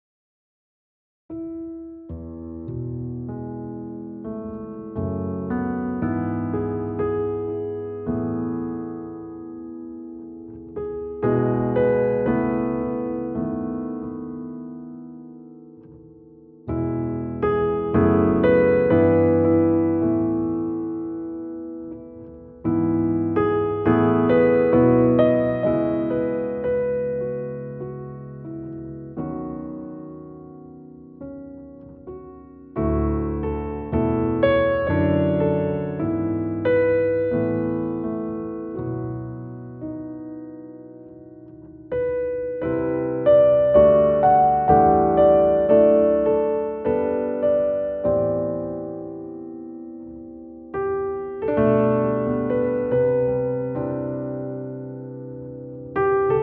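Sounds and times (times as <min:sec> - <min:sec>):
rosewood grand piano: 0:01.3 - 0:56.4.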